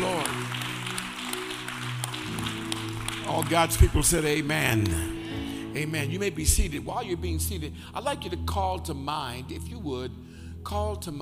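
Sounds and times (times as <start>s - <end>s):
crowd clapping in praise: 0.0s - 5.1s
speech: 3.3s - 5.2s, 5.8s - 11.2s.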